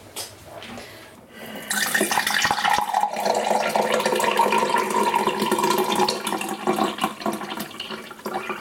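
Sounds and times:
iced tea poured into a glass: 1.7 - 8.5.

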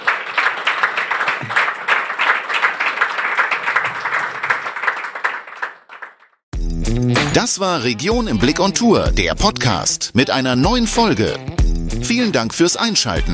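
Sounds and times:
audience applause: 0.0 - 6.4
speech: 7.4 - 13.3.

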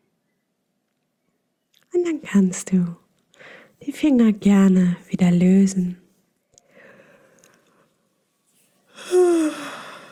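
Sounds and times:
speech: 2.0 - 3.0, 3.8 - 6.0
yawn: 8.9 - 10.0.

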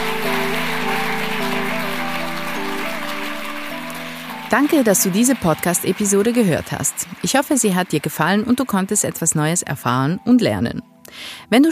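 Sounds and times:
audience applause: 0.0 - 9.4
speech: 4.5 - 11.7.

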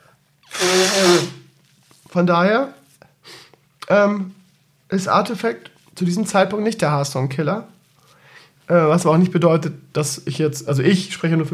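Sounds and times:
person blowing nose: 0.4 - 1.5
speech: 2.2 - 2.8, 3.9 - 7.8, 8.7 - 11.5.

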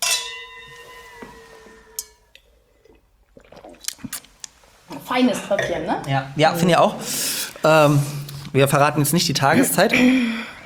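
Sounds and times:
glasses clinking in a toast: 0.0 - 2.3
soft clicks and sips: 2.4 - 4.8
speech: 5.1 - 10.5.

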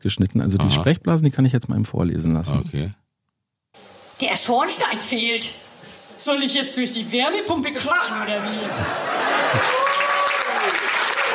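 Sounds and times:
speech: 0.0 - 3.0, 4.3 - 9.8
laughter: 7.8 - 11.1
audience applause: 8.8 - 11.3.

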